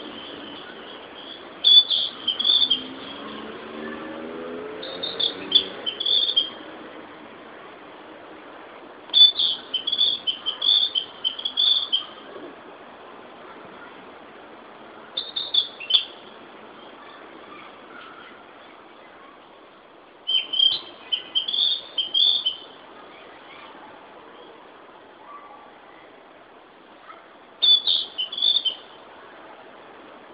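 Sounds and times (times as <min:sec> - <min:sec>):
Narcissus flycatcher song: 0:00.0 - 0:03.4, 0:04.8 - 0:06.6, 0:09.1 - 0:12.2, 0:15.2 - 0:16.3, 0:20.3 - 0:23.6, 0:27.6 - 0:29.0
steady background hum: 0:00.0 - 0:03.6, 0:04.8 - 0:30.3.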